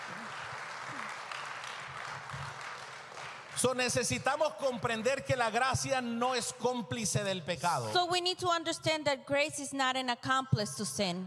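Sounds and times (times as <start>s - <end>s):
audience applause: 0.0s - 4.4s
speech: 3.6s - 11.2s.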